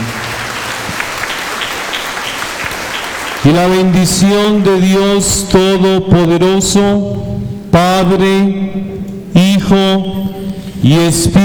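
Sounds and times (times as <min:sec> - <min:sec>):
applause: 0:00.0 - 0:04.6
speech: 0:03.4 - 0:11.4.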